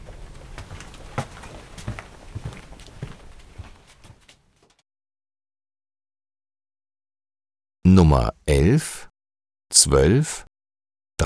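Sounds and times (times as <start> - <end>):
footsteps walking across an office floor: 0.0 - 4.8
speech: 8.0 - 9.1, 9.7 - 10.5.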